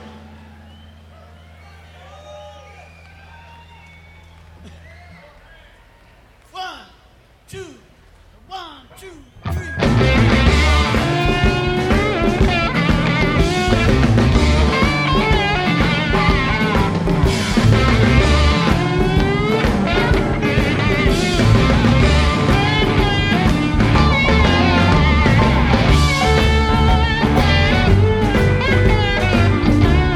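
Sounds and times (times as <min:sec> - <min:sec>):
jazz music: 0:09.8 - 0:30.1.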